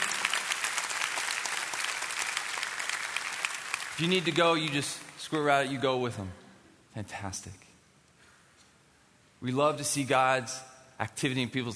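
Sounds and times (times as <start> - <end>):
audience clapping: 0.0 - 5.2
speech: 4.0 - 6.4, 7.0 - 7.6, 9.4 - 11.7.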